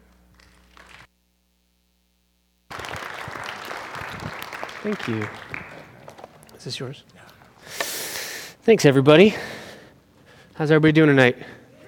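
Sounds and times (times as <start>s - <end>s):
audience applause welcoming a pastor at an evening church gathering: 0.4s - 1.1s, 2.7s - 7.6s
speech: 4.8s - 5.5s, 6.6s - 7.8s, 8.7s - 9.5s, 10.6s - 11.6s.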